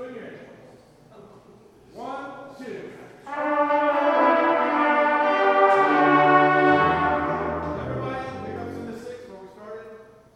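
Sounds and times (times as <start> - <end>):
brass instrument practice: 3.2 - 9.3.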